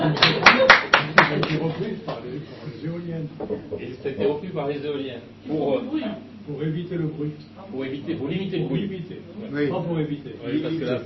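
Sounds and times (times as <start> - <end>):
audience applauding: 0.0 - 1.7
speech: 3.3 - 11.0.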